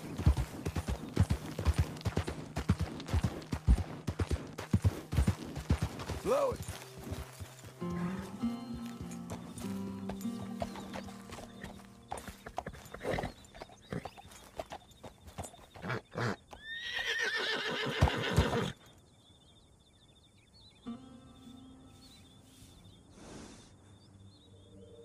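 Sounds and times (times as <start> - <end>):
horse hooves clip-clopping: 0.0 - 18.6
horse whinnying and neighing: 15.8 - 18.8.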